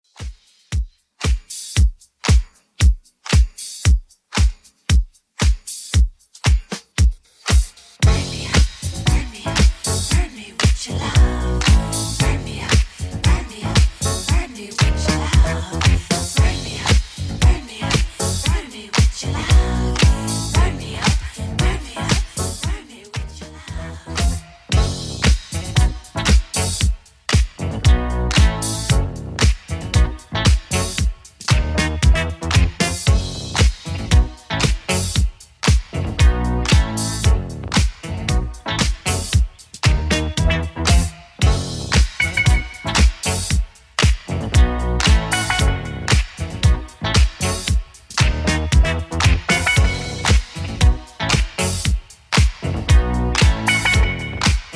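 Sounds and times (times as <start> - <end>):
70s Redrum drum machine beat: 0.1 - 54.7.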